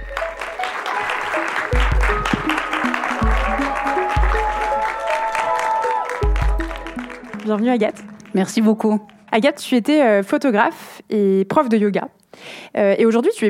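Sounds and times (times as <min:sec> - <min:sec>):
audience applause: 0:00.0 - 0:09.4
music track with a pulsing low bass line: 0:01.7 - 0:09.3
speech: 0:07.5 - 0:13.4.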